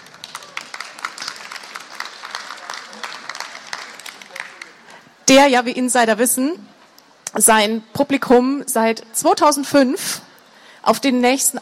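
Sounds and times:
audience applause: 0:00.0 - 0:04.9
speech: 0:05.3 - 0:06.7, 0:07.3 - 0:11.5.

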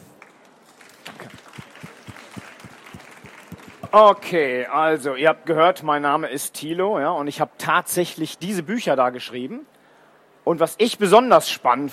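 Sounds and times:
audience applause: 0:00.2 - 0:04.2
speech: 0:03.9 - 0:09.7, 0:10.5 - 0:11.9.

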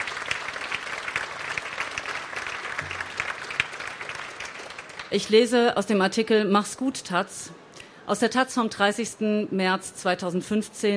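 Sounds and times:
audience clapping: 0:00.0 - 0:05.3
speech: 0:05.1 - 0:10.9.

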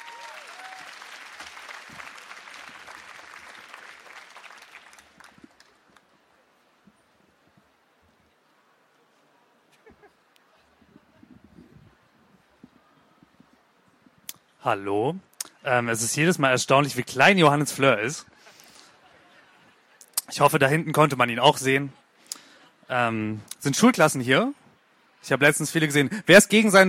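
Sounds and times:
audience applause: 0:00.0 - 0:06.2
speech: 0:14.6 - 0:18.3, 0:20.4 - 0:22.0, 0:22.9 - 0:24.6, 0:25.2 - 0:26.8.

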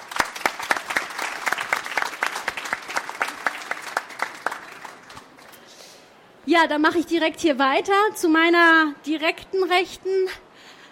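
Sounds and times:
audience applause: 0:00.0 - 0:05.6
speech: 0:06.4 - 0:10.4.

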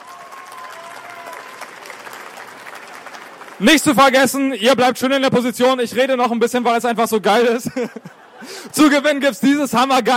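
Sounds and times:
audience applause: 0:00.0 - 0:04.1
speech: 0:03.6 - 0:10.1
laughter: 0:07.4 - 0:09.3.

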